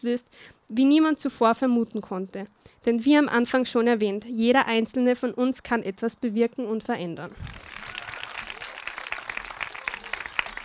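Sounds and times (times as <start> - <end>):
speech: 0.0 - 7.8
audience applause: 7.4 - 10.6.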